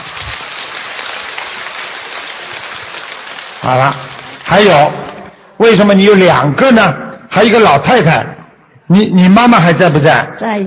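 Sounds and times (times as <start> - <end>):
crowd applause: 0.0 - 5.3
speech: 3.6 - 5.0, 5.6 - 8.3, 8.9 - 10.6.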